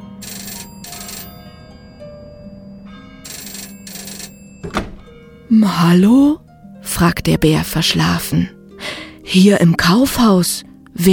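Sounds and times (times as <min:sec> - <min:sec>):
toy telephone ringing: 0:00.0 - 0:04.7
speech: 0:05.5 - 0:08.6, 0:09.3 - 0:11.1.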